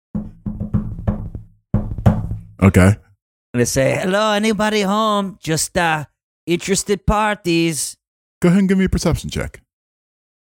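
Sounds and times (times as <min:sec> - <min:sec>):
hollow knocks on a wooden door: 0:00.1 - 0:02.6
speech: 0:02.6 - 0:09.6.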